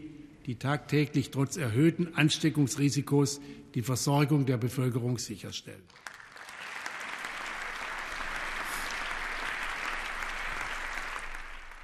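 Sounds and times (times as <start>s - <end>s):
speech: 0.4s - 6.2s
parliamentary applause in the Bundestag: 5.8s - 11.8s.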